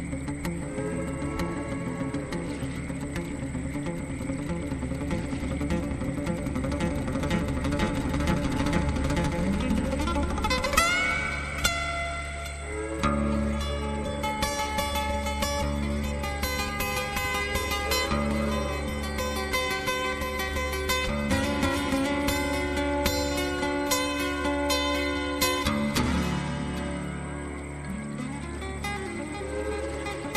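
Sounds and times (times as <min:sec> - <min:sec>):
acoustic music: 0:00.0 - 0:30.3.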